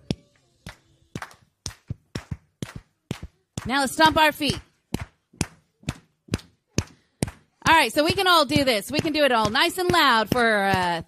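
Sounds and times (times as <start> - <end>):
group clapping hands in a room: 0.6 - 3.7, 4.9 - 7.5
speech: 3.7 - 4.7, 7.8 - 11.0.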